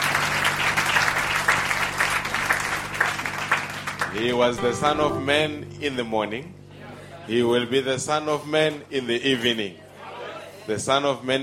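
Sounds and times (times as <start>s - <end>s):
round of applause: 0.0s - 4.8s
speech: 4.2s - 6.6s, 7.2s - 9.8s, 10.6s - 11.4s.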